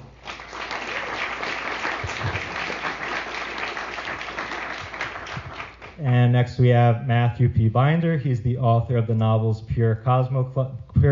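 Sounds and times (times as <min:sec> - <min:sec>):
crowd applause: 0:00.0 - 0:06.0
speech: 0:06.0 - 0:11.1.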